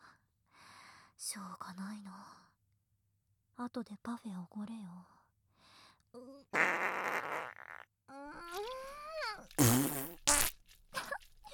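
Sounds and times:
speech: 0:01.3 - 0:02.4, 0:03.6 - 0:05.2, 0:06.1 - 0:07.4
farts: 0:06.6 - 0:07.9, 0:09.4 - 0:10.6.

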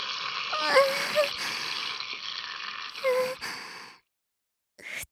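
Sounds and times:
urinating into a diaper: 0:00.0 - 0:03.6.

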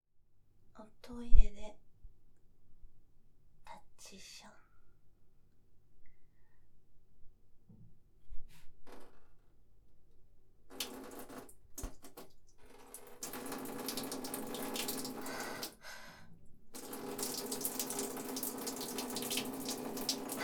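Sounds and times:
person urinating standing up in a toilet: 0:10.7 - 0:16.2, 0:16.8 - 0:20.4.

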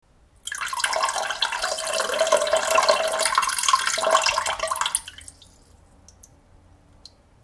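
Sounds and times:
urine trickling: 0:00.4 - 0:06.3.

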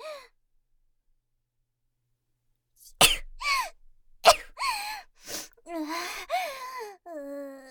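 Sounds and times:
person sneezing: 0:03.0 - 0:03.7, 0:04.3 - 0:05.6
person sniffling: 0:04.3 - 0:06.6.

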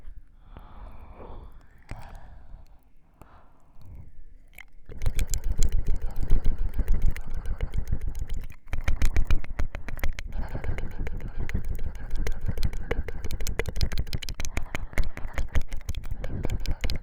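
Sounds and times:
strong ear licking on the right side: 0:03.7 - 0:17.0.

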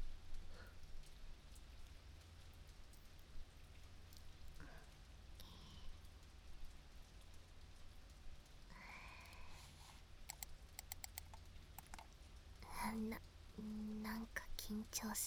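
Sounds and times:
rain: 0:00.0 - 0:10.0, 0:12.2 - 0:15.2
ear cleaning scratching: 0:10.3 - 0:12.0.

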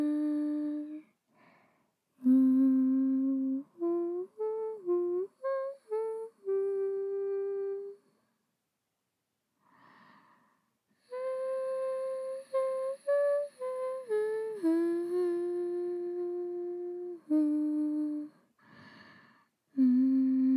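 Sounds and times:
person singing a lullaby: 0:00.0 - 0:01.1, 0:02.2 - 0:08.1, 0:11.0 - 0:19.0, 0:19.7 - 0:20.5.

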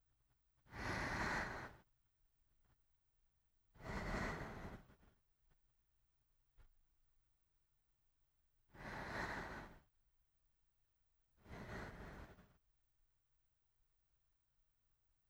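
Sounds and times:
sleeping breath: 0:00.7 - 0:01.8, 0:03.8 - 0:05.2, 0:08.7 - 0:09.9, 0:11.4 - 0:12.6.

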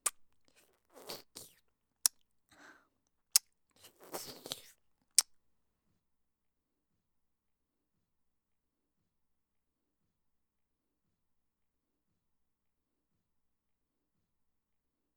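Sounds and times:
ear licking in left ear: 0:00.0 - 0:01.6, 0:03.8 - 0:04.7.

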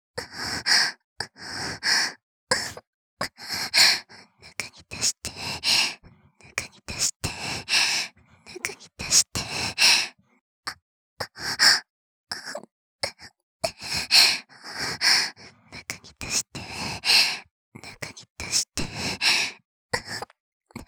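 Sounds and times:
person panting: 0:00.2 - 0:10.2, 0:13.7 - 0:20.1.

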